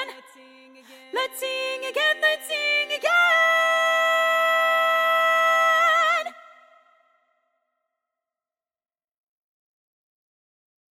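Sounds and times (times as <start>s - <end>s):
tenor singing: 0.0s - 6.6s.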